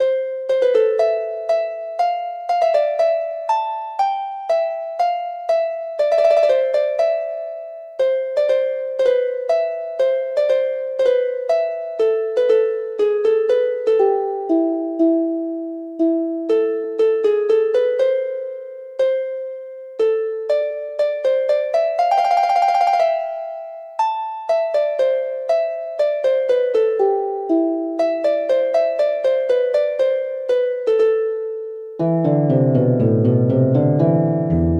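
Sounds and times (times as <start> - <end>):
harp: 0.0 - 34.7.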